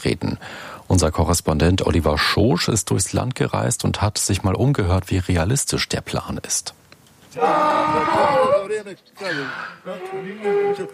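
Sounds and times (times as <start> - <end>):
speech: 0.0 - 10.9
hungry donkey braying: 7.3 - 10.9.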